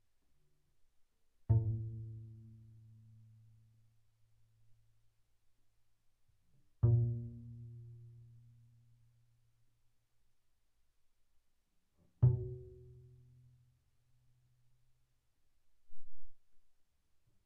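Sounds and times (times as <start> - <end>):
double bass pizzicato on the D string: 1.5 - 3.5, 6.8 - 9.0, 12.1 - 13.8.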